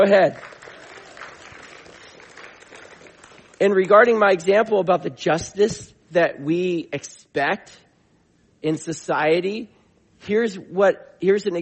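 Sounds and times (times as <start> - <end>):
speech: 0.0 - 0.5, 3.6 - 7.8, 8.6 - 11.6
audience applauding: 0.0 - 3.6.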